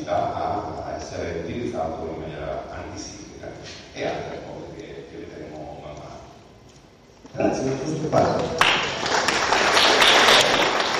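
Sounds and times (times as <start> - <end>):
speech: 1.2 - 4.5, 7.4 - 9.2
audience applause: 8.3 - 10.9.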